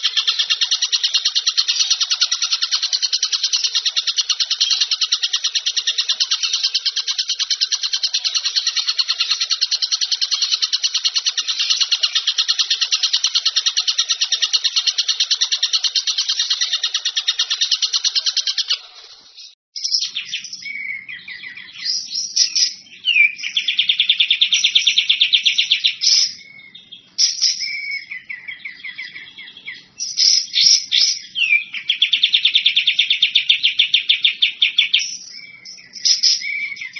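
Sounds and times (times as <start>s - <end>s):
bird chatter: 0.0s - 36.9s.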